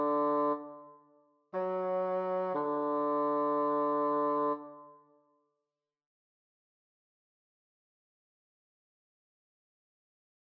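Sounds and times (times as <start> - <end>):
adagio bassoon duet: 0.0 - 0.8, 1.6 - 4.8.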